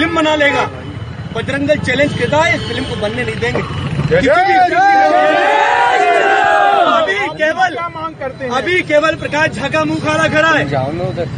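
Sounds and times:
speech: 0:00.2 - 0:06.3, 0:07.3 - 0:11.3
protesters shouting in an uproar: 0:04.2 - 0:07.4.

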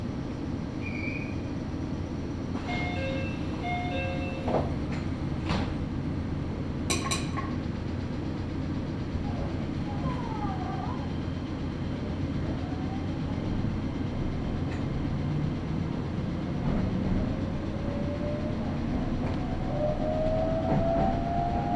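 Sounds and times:
train rumble and rattle during a ride: 0:00.0 - 0:21.7.

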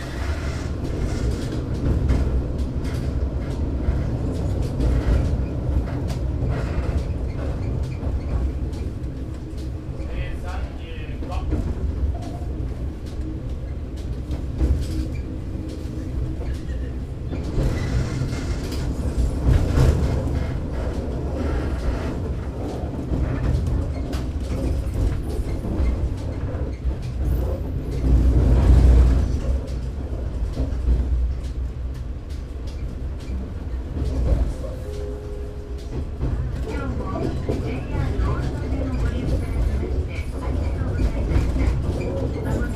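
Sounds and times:
Kiha 52 diesel railcar rumbling on the Oito Line: 0:00.0 - 0:42.7.

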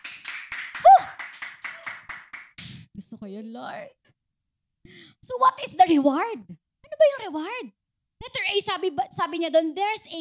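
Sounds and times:
congregation clapping during a worship service: 0:00.0 - 0:02.7
speech: 0:03.0 - 0:04.0, 0:05.3 - 0:10.2.

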